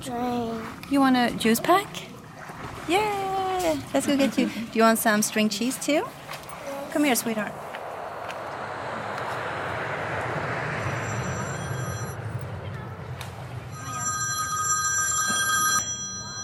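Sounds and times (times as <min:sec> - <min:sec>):
speech: 0:00.0 - 0:02.1, 0:02.9 - 0:06.2, 0:06.9 - 0:07.6
loud roar: 0:06.4 - 0:14.0
phone ringing tone on an outgoing call: 0:10.9 - 0:12.2, 0:13.7 - 0:16.4.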